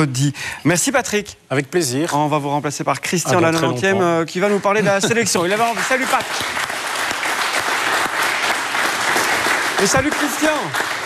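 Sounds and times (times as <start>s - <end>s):
speech: 0.0s - 6.9s, 9.8s - 10.9s
applause: 5.3s - 11.0s.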